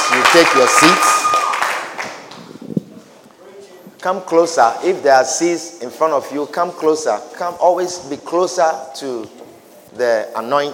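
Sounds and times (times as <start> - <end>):
audience clapping hands: 0.0 - 2.5
speech: 0.3 - 1.3, 4.0 - 10.7.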